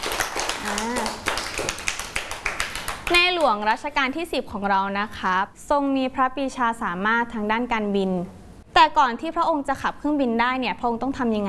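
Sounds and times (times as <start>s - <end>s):
children clapping hands: 0.0s - 3.5s
speech: 3.1s - 11.4s.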